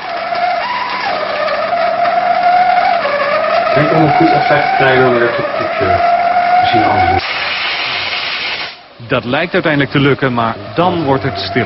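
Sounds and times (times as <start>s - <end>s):
pressurised boiler water forcing through blocked outlet: 0.0s - 9.0s, 9.6s - 11.6s
speech: 3.8s - 7.4s, 9.1s - 11.6s.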